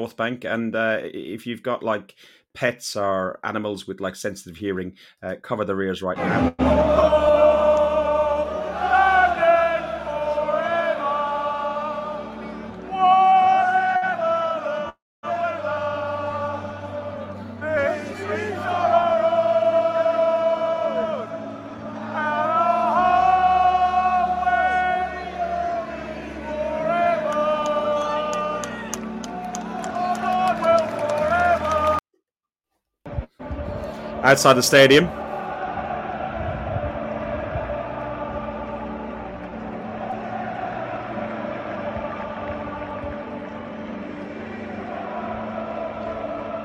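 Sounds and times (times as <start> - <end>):
speech: 0.0 - 7.6, 34.3 - 35.2
stadium crowd singing along loudly in unison: 6.2 - 32.0, 33.1 - 46.6.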